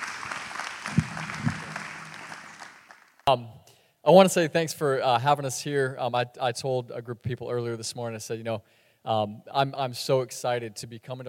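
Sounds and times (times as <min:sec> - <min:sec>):
audience applauding: 0:00.0 - 0:03.2
speech: 0:03.3 - 0:11.2.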